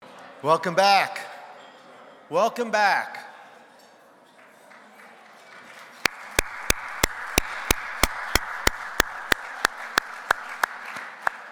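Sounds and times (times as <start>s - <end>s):
speech: 0.4s - 1.3s, 2.3s - 3.3s
audience applause: 6.1s - 11.4s.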